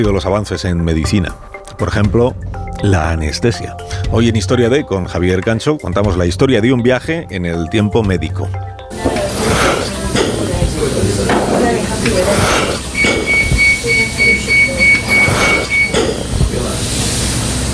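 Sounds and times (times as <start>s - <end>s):
speech: 0.0s - 9.1s
patient breathing through a mechanical ventilator: 9.0s - 17.7s
faint electronic tone: 12.9s - 16.0s.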